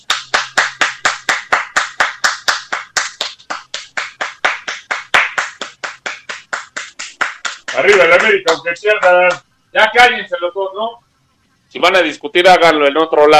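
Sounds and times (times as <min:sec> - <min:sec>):
hand claps: 0:00.0 - 0:09.5
speech: 0:07.8 - 0:11.0, 0:11.7 - 0:13.3.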